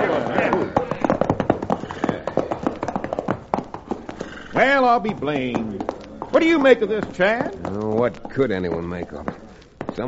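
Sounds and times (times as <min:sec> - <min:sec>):
horses' hooves clattering as riders rein up: 0:00.0 - 0:10.0
noise: 0:00.0 - 0:10.0
speech: 0:04.6 - 0:09.3.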